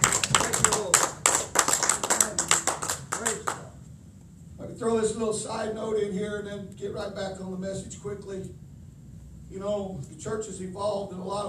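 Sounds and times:
church congregation clapping hands in praise: 0.0 - 3.7
speech: 5.0 - 8.6, 9.5 - 11.4.

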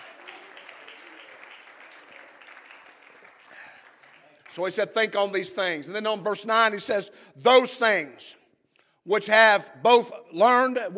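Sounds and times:
audience clapping hands: 0.0 - 5.4
speech: 4.5 - 8.4, 9.0 - 10.9.

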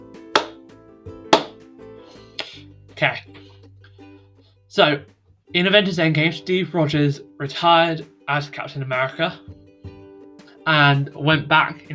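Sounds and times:
hand claps: 0.2 - 0.7, 1.3 - 1.7, 2.4 - 2.6
speech: 3.0 - 3.4, 4.7 - 9.6, 10.6 - 11.9.

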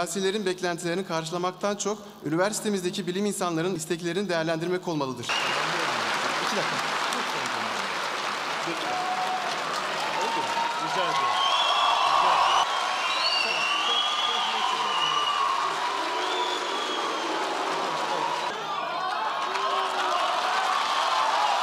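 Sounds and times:
speech: 0.0 - 5.7, 6.5 - 7.0, 8.7 - 9.1
large crowd clapping in protest: 5.3 - 21.6.

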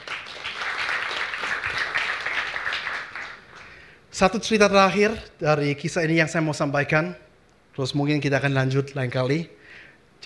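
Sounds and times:
audience applause: 0.0 - 3.8
speech: 4.2 - 9.6.

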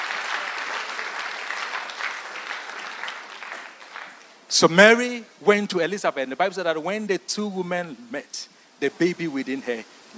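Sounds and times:
audience clapping: 0.0 - 4.5
speech: 4.5 - 10.1.

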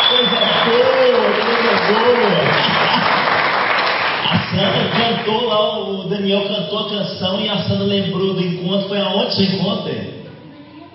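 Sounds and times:
audience applause: 0.0 - 5.5
speech: 5.6 - 10.1.

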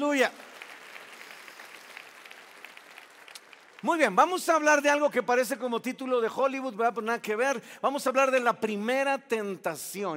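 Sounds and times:
speech: 0.0 - 0.5, 3.8 - 10.1
audience applause: 0.0 - 4.2.

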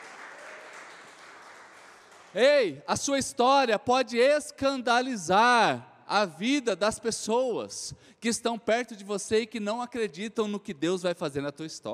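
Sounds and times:
audience applause: 0.0 - 2.4
speech: 2.3 - 11.9.

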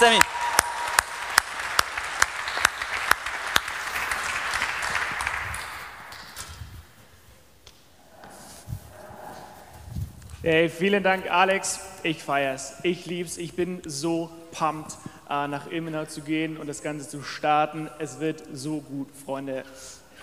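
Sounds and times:
speech: 0.0 - 0.4, 10.4 - 20.0
big round of applause: 0.0 - 6.4.

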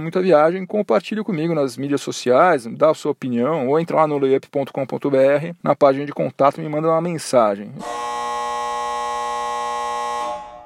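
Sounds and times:
speech: 0.0 - 8.1
end-of-game electronic buzzer: 7.8 - 10.6.

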